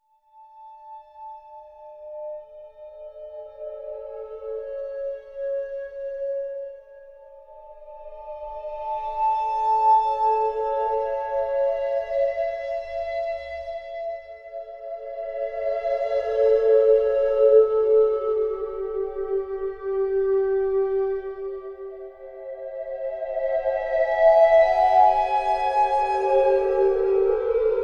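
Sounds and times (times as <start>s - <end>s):
flute melody: 8.6s - 27.8s.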